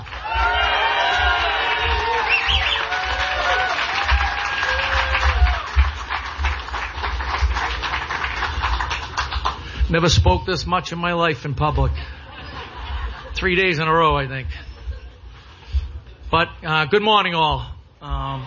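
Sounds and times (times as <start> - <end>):
audience applause: 0.0 - 9.8
speech: 9.9 - 12.2, 13.4 - 14.7, 16.3 - 18.4
laughter: 12.0 - 13.7.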